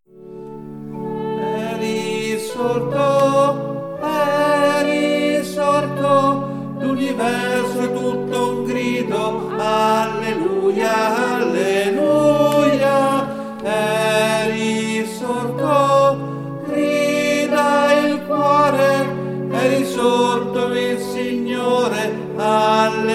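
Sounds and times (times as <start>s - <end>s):
tenors singing: 0.4s - 23.1s.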